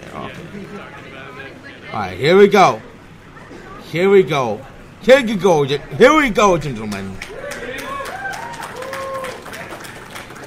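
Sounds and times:
speech: 0.3s - 2.9s, 3.9s - 7.2s
audience applause: 6.5s - 10.4s
crowd voices and gliding whoops: 7.2s - 9.8s.

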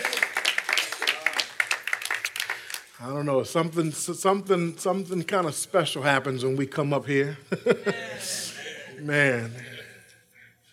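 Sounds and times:
church congregation clapping in praise for the worship musicians: 0.0s - 3.0s
speech: 3.0s - 9.7s
laughter: 7.4s - 9.6s.

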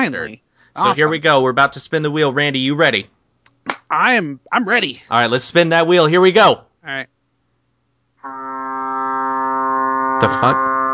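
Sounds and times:
speech: 0.0s - 3.2s, 3.9s - 7.1s, 10.2s - 10.7s
foghorn blast: 8.2s - 10.9s.

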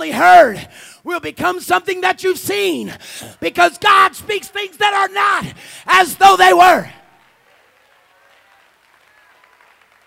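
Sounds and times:
speech: 0.0s - 7.0s
audience clapping: 6.6s - 10.0s.

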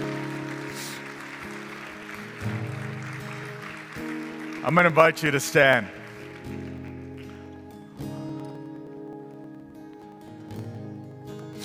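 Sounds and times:
crowd clapping: 0.0s - 8.5s
sustained held keyboard chords: 0.0s - 11.6s
speech: 4.6s - 6.0s.

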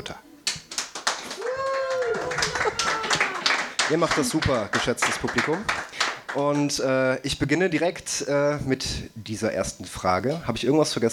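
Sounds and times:
audience applause: 0.8s - 6.3s
speech: 3.9s - 11.1s.

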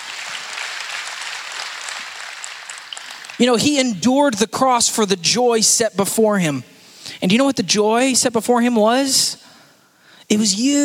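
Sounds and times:
crowd applauding: 0.0s - 3.7s
speech: 3.4s - 9.5s, 10.3s - 10.8s.

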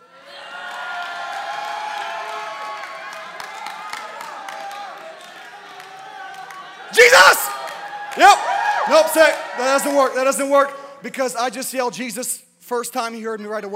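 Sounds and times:
crowd shouting and cheering loudly: 0.0s - 10.8s
speech: 8.2s - 13.7s.

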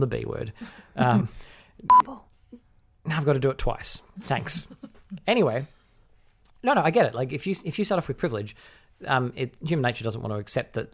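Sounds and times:
speech: 0.0s - 5.8s, 6.6s - 10.9s
censor beep: 1.9s - 2.1s.

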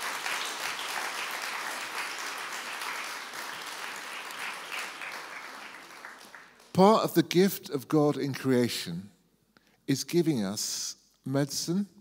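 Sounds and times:
audience applause: 0.0s - 6.7s
speech: 6.8s - 9.1s, 9.9s - 11.9s.

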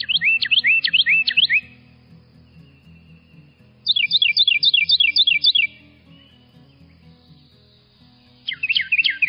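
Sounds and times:
male Carolina wren song: 0.0s - 9.2s.

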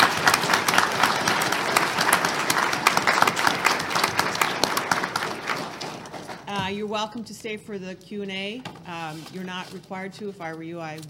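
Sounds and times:
audience applause at a visiting legal event with students: 0.0s - 6.5s
speech: 7.0s - 11.0s.

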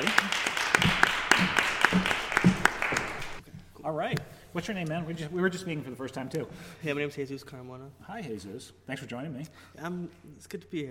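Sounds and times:
audience applause: 0.0s - 3.4s
speech: 3.9s - 10.8s.

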